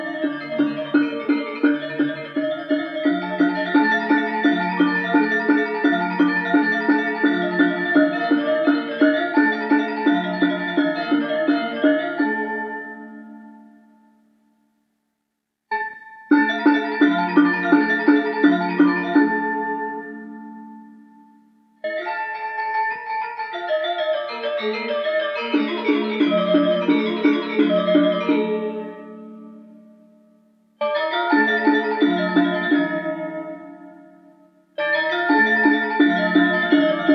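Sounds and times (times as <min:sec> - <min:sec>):
Balinese gamelan gong kebyar ensemble playing: 0:00.0 - 0:14.0, 0:15.7 - 0:21.2, 0:21.8 - 0:30.1, 0:30.8 - 0:37.1.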